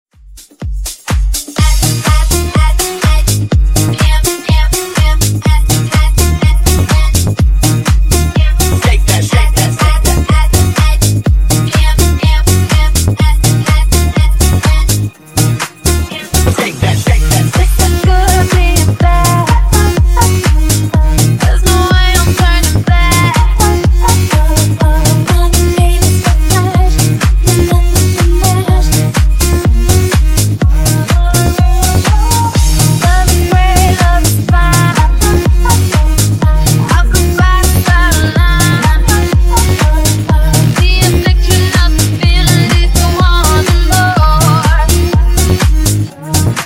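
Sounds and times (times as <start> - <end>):
disco funk music at 124 bpm: 0.1 - 46.6.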